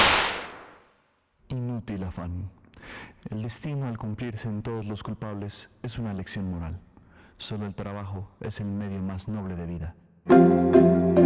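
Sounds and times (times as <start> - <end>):
firing-squad volley of gunfire: 0.0 - 0.8
speech: 2.0 - 11.2.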